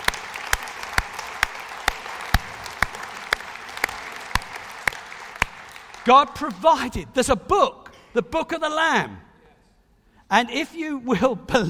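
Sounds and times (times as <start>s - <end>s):
audience applause: 0.0s - 6.6s
speech: 6.0s - 9.2s, 10.3s - 11.6s.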